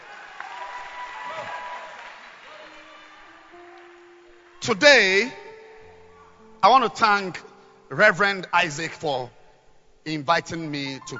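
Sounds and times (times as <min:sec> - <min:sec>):
church congregation clapping to welcome a singer: 0:00.0 - 0:05.4
speech: 0:04.7 - 0:05.4, 0:06.6 - 0:09.4, 0:10.0 - 0:11.1.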